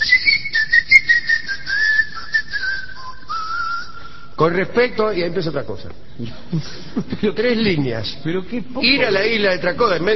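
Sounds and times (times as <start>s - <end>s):
people whistling on the island of Tracoda: 0.0s - 4.4s
speech: 4.4s - 10.1s.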